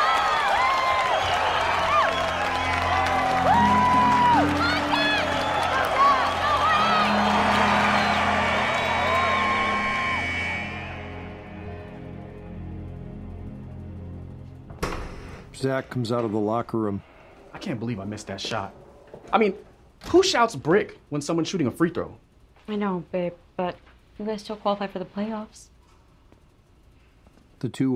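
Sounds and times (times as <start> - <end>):
crowd applauding at a high school basketball game: 0.0 - 11.8
speech: 15.6 - 25.7, 27.6 - 27.9.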